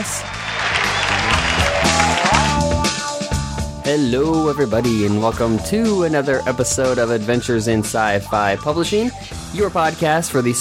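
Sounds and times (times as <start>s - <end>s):
audience cheering and applause: 0.0s - 3.4s
sustained musical tones: 0.3s - 9.3s
speech: 3.9s - 10.5s.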